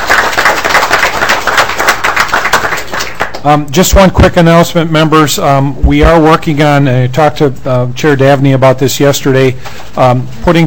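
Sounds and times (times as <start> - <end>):
applause from committee members: 0.0 - 3.6
speech: 3.4 - 10.6.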